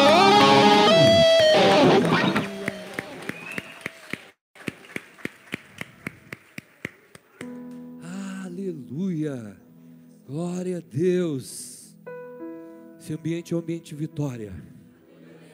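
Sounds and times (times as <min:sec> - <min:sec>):
music: 0:00.0 - 0:03.4, 0:07.4 - 0:15.5
audience applause: 0:00.0 - 0:07.5
speech: 0:13.1 - 0:14.8.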